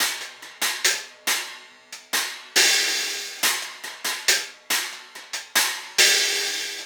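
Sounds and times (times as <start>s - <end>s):
cymbal pattern: 0.0s - 6.8s.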